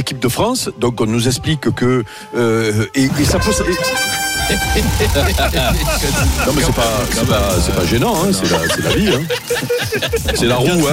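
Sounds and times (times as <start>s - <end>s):
speech: 0.0s - 10.9s
comedic alert horn sound effect played as a gag: 3.1s - 8.2s
laughter: 3.8s - 10.9s.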